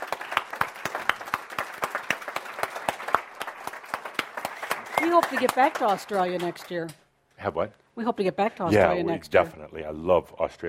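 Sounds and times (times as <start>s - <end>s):
audience applause: 0.0s - 6.7s
speech: 5.1s - 10.6s.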